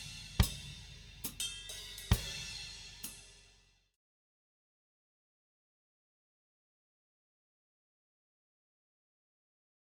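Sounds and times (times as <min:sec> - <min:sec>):
flanged drums: 0:00.0 - 0:03.2.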